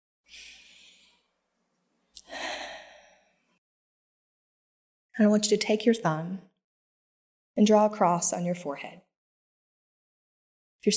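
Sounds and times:
group taking a deep breath during a church service: 2.2s - 3.5s
speech: 5.2s - 6.5s, 7.6s - 9.1s.

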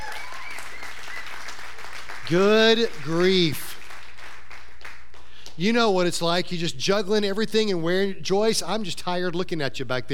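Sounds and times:
whoops: 0.0s - 1.5s
crowd applause: 0.0s - 5.0s
speech: 2.3s - 3.7s, 5.6s - 10.1s.

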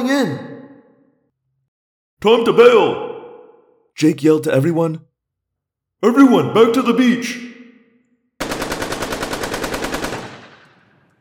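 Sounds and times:
speech: 0.0s - 0.5s, 2.2s - 3.1s, 4.0s - 5.1s, 6.0s - 7.6s
automatic weapons firing: 8.4s - 11.1s.

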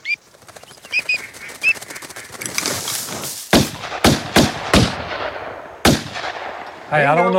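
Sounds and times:
bird calls: 0.0s - 3.2s
duck wings flapping: 0.0s - 3.9s
shotgun blasts: 3.5s - 7.0s.

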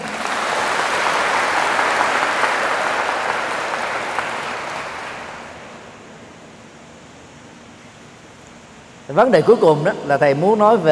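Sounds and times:
crowd clapping: 0.0s - 6.0s
speech: 9.2s - 10.9s.

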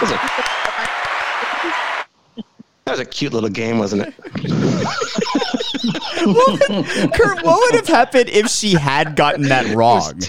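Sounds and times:
laughter: 0.0s - 1.9s, 3.8s - 10.2s
applause: 0.0s - 2.1s
speech: 3.0s - 10.2s.

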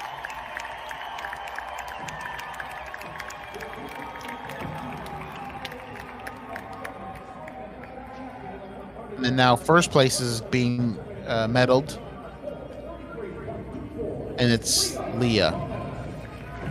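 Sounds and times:
crowd cheering at medal ceremony: 0.0s - 10.5s, 14.5s - 16.7s
speech: 9.2s - 12.0s, 14.4s - 15.7s.

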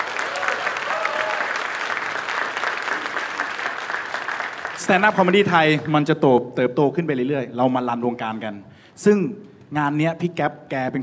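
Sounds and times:
shouts from audience: 0.0s - 1.8s
audience applause and cheering: 0.0s - 5.4s
speech: 4.9s - 11.0s.

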